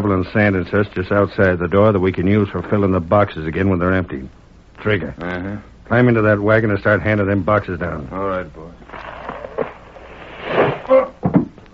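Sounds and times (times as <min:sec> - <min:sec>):
speech: 0:00.1 - 0:09.0
person falling: 0:08.9 - 0:11.6
board breaking: 0:09.2 - 0:11.6.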